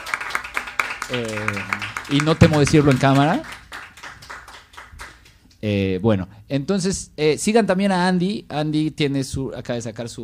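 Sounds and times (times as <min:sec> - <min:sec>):
audience applause: 0:00.0 - 0:05.4
speech: 0:01.1 - 0:03.6, 0:05.6 - 0:10.2.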